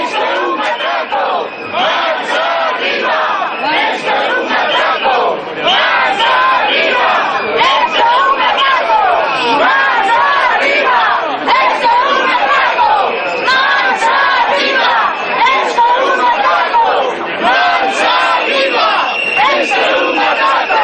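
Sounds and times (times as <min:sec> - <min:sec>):
protest crowd chanting: 0:00.0 - 0:20.8.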